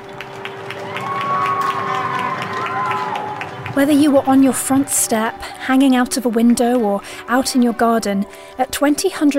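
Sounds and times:
street applause: 0.0 - 5.6
people whooping: 0.5 - 6.1
speech: 3.8 - 9.3.

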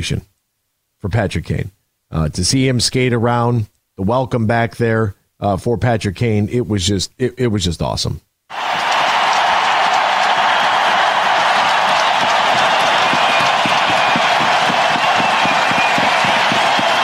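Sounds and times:
speech: 0.0 - 0.3, 1.0 - 8.6
arena crowd cheering and applauding: 8.5 - 17.0
whistles: 8.5 - 17.0.

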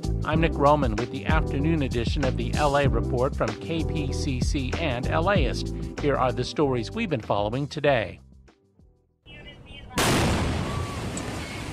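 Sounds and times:
speech: 0.2 - 8.2
2.5 tons of seized fireworks exploding during bomb squad disposal in South Los Angeles: 10.0 - 11.7.

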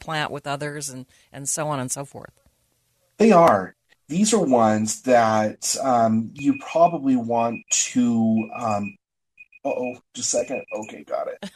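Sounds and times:
speech: 0.0 - 2.5, 3.2 - 9.0, 9.6 - 11.5
phone timer alarm going off: 6.4 - 11.0.

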